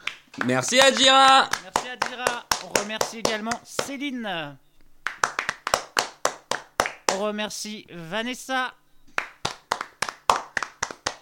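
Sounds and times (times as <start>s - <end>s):
hand clapping as thanks after a show: 0.0s - 4.0s, 5.0s - 7.3s, 9.1s - 11.2s
speech: 0.4s - 4.6s, 7.1s - 8.8s.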